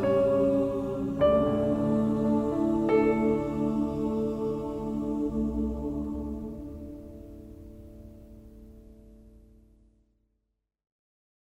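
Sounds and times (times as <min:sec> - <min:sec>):
pop choir singing: 0:00.0 - 0:07.4.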